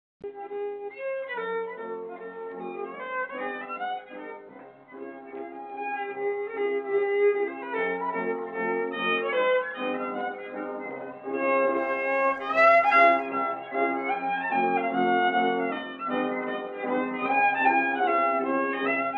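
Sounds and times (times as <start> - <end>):
music: 0.2 - 19.1.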